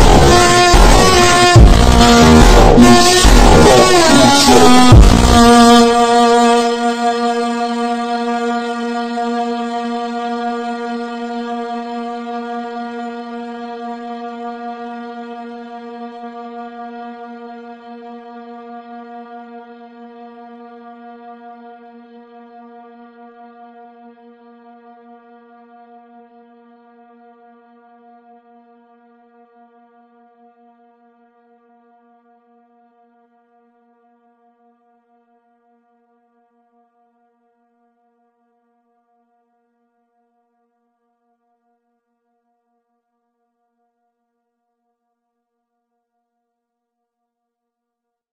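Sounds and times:
slowed montagem music: 0:00.0 - 0:07.8.

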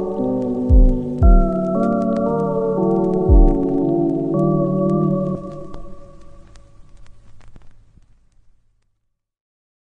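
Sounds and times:
slowed funk music: 0:00.0 - 0:06.6.

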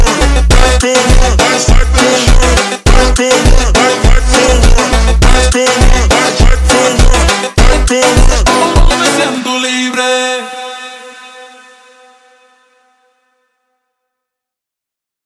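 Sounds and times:
super slowed funk music: 0:00.0 - 0:09.8.

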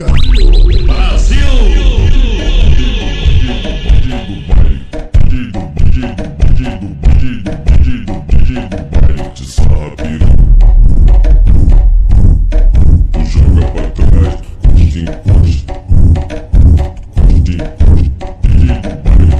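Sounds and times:
slowed Brazilian bass-heavy music with reverb: 0:00.0 - 0:19.3.

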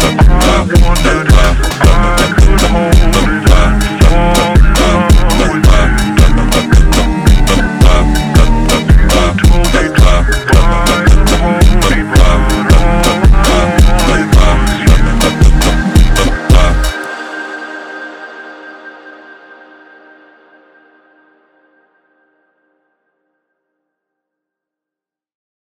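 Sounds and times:
super slowed funk music: 0:00.0 - 0:17.2.

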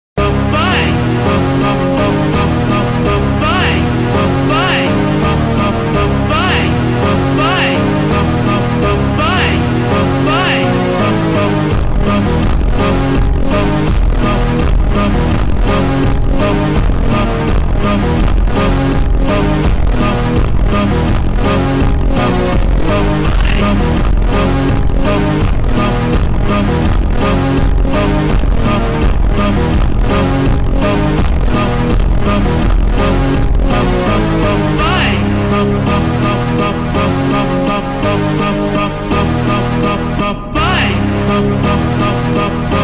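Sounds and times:
slowed phonk music: 0:00.2 - 0:42.8.

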